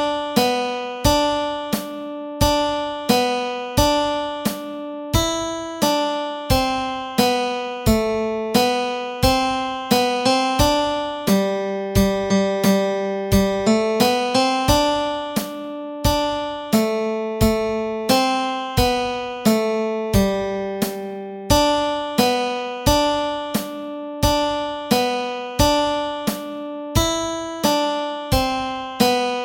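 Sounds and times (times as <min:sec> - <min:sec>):
nursery rhyme melody with chords: 0:00.0 - 0:29.4.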